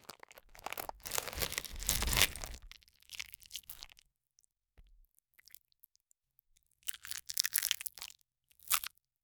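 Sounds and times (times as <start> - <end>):
sandwich wrapper crinkling during unwrapping: 0.0 - 2.8.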